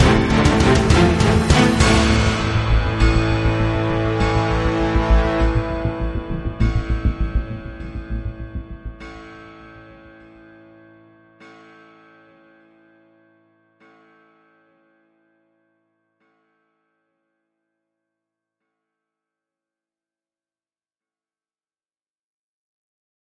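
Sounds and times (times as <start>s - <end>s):
gothic action fight stinger: 0.0s - 10.3s.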